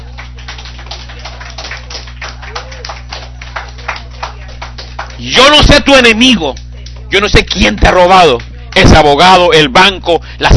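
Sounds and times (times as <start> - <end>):
audience applause: 0.0 - 9.1
low electrical hum: 0.0 - 10.5
speech: 5.2 - 10.5.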